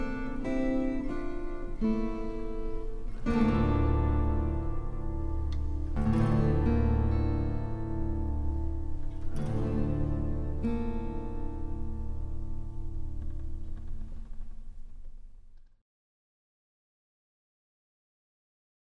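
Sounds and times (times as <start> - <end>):
guitar trio playing a Christmas carol: 0.0 - 14.4.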